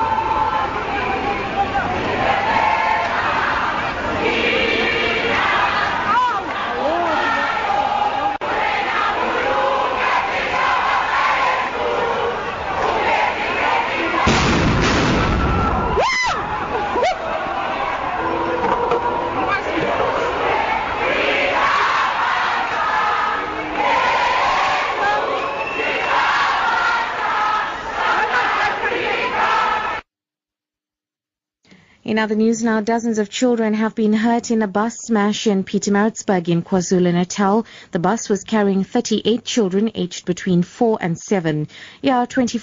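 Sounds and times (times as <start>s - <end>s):
large crowd of protesting students chanting and shouting: 0.0s - 30.0s
sharp burst of noise: 13.7s - 16.7s
speech: 32.2s - 42.6s.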